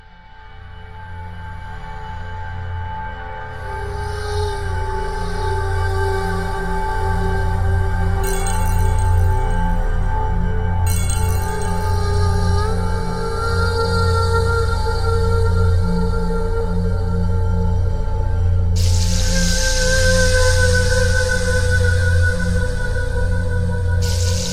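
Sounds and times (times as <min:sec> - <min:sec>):
ambient music: 0:00.5 - 0:24.5.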